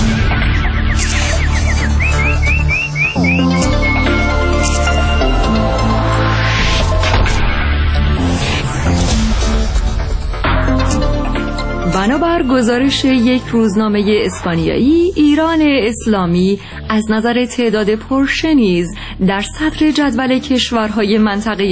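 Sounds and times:
loud continuous music: 0.0 - 21.6
nightingale warbling song: 0.5 - 4.4
speech: 12.2 - 21.6.

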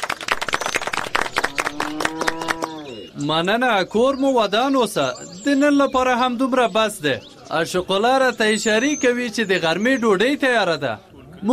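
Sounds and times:
audience clapping at a village gathering about a planned cultural centre: 0.0 - 3.0
speech: 1.7 - 11.5.

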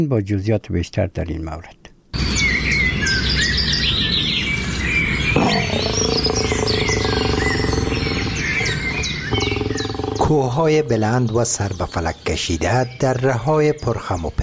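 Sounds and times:
speech: 0.0 - 2.5, 5.4 - 6.1, 10.3 - 14.4
birds singing and chirping: 2.2 - 14.4
deep sustained animal-like tone: 5.4 - 10.6.

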